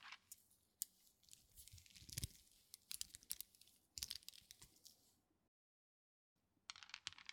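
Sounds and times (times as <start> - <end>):
power stone beads rubbing in ASMR massage: 0.3 - 5.1.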